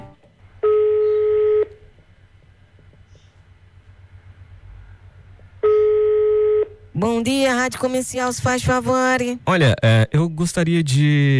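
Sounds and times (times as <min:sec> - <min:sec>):
long steady electronic telephone line beeps: 0:00.6 - 0:01.8, 0:05.6 - 0:06.8
speech: 0:07.0 - 0:11.3.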